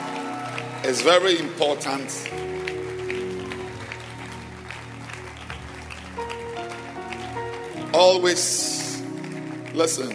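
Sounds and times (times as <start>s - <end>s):
audience hand clapping: 0.0s - 10.1s
speech: 0.8s - 2.6s, 8.0s - 8.8s, 9.8s - 10.1s.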